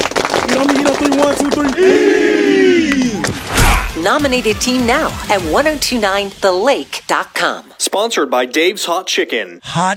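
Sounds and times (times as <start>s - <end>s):
football team clapping in unison: 0.0s - 3.4s
speech: 0.6s - 9.9s.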